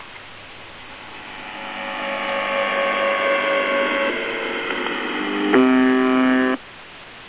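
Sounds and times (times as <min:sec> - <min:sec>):
USB message buzzer: 0:02.3 - 0:06.6.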